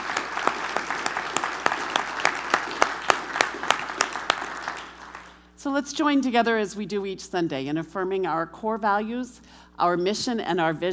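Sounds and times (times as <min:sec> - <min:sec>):
audience applause: 0:00.0 - 0:05.4
speech: 0:05.6 - 0:10.9.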